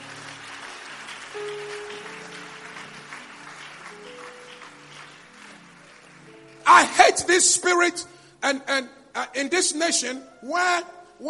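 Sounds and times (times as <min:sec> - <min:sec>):
audience clapping: 0:00.0 - 0:07.4
speech: 0:06.7 - 0:11.2.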